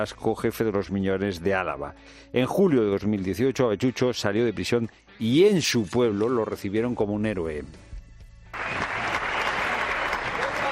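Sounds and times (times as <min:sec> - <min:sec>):
speech: 0:00.0 - 0:07.9
crowd applause at a homecoming: 0:08.6 - 0:10.7.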